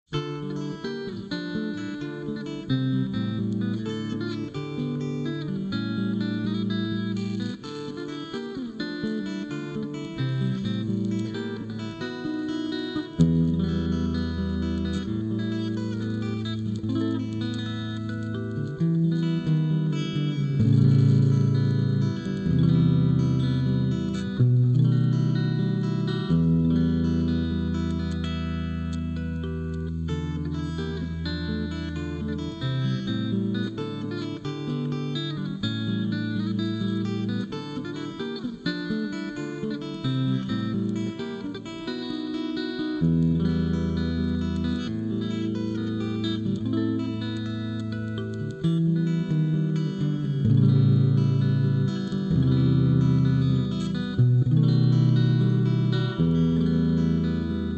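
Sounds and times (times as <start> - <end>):
instrumental music: 0.0 - 57.7.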